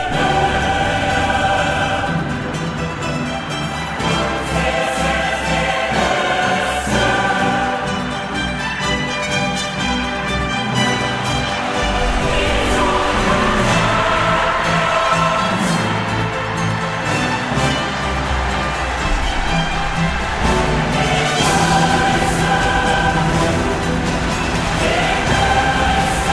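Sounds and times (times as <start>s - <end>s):
jingle: 0.1s - 26.3s.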